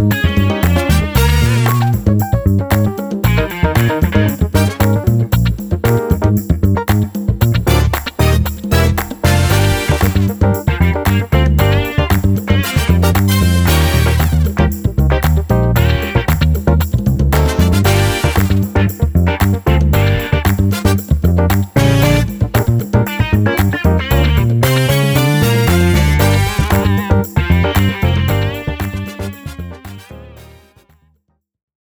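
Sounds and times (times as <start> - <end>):
drumless funk music: 0.0 - 30.8.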